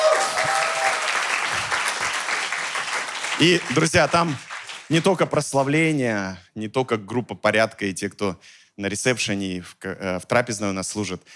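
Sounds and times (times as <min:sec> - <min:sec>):
church congregation applauding its volunteer servers: 0:00.0 - 0:05.3
speech: 0:03.4 - 0:11.3.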